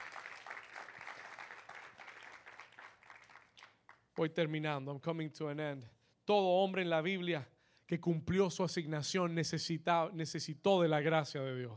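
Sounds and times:
audience applauding: 0:00.0 - 0:04.0
speech: 0:04.2 - 0:11.7.

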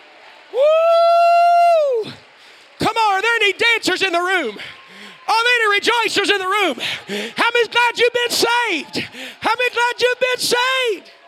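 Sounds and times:
audience clapping and shouting: 0:00.0 - 0:11.2
speech: 0:04.0 - 0:11.2.

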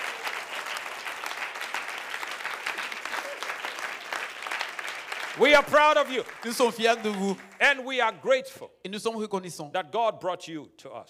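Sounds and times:
audience clapping hands: 0:00.0 - 0:08.3
speech: 0:05.4 - 0:11.0.

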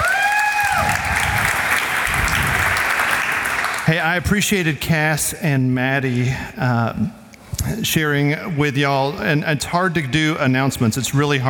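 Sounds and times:
audience applause: 0:00.0 - 0:04.1
speech: 0:03.9 - 0:11.4.

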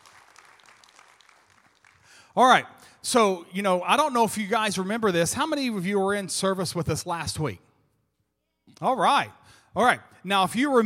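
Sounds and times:
crowd applauding: 0:00.0 - 0:02.2
speech: 0:02.3 - 0:07.7, 0:08.8 - 0:10.8.

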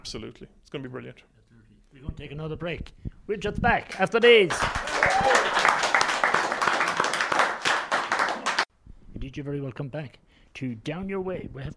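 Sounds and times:
speech: 0:00.1 - 0:05.8, 0:09.2 - 0:11.7
crowd applause: 0:04.5 - 0:08.7.

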